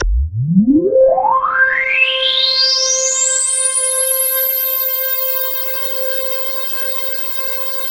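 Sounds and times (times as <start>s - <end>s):
KORG DW8000 vintage synthesizer keyboard: 0.0s - 7.8s.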